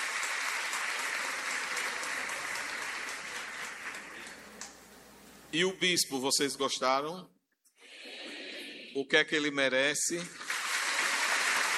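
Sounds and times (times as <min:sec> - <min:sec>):
audience applause: 0:00.0 - 0:04.5, 0:10.3 - 0:11.7
speech: 0:05.5 - 0:07.4, 0:09.0 - 0:10.4.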